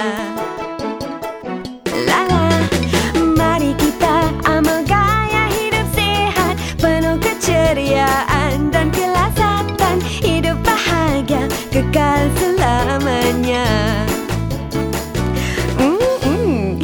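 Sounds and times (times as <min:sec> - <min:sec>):
jingle: 0:00.2 - 0:16.7.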